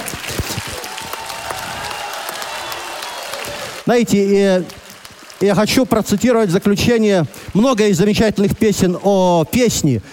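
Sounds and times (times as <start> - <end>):
audience applause in concert hall: 0.0 - 6.8
speech: 3.9 - 4.8, 5.4 - 10.1.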